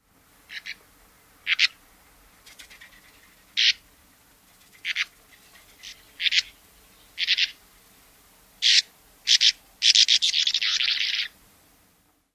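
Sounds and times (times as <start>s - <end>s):
calls: 0.5s - 0.8s, 1.4s - 1.8s, 2.5s - 3.8s, 4.7s - 7.6s, 8.6s - 11.4s.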